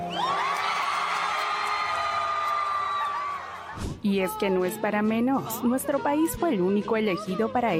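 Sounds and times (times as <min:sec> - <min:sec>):
large crowd screaming and cheering: 0:00.1 - 0:03.9
applause: 0:00.3 - 0:03.8
speech: 0:04.1 - 0:07.7.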